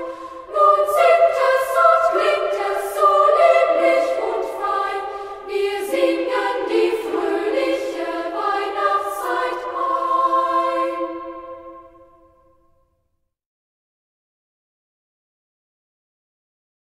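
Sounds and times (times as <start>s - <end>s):
children's choir: 0.0s - 12.6s.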